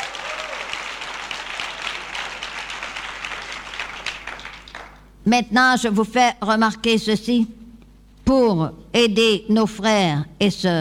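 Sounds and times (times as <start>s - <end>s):
audience applause: 0.0s - 5.1s
speech: 5.3s - 7.6s, 8.3s - 10.7s.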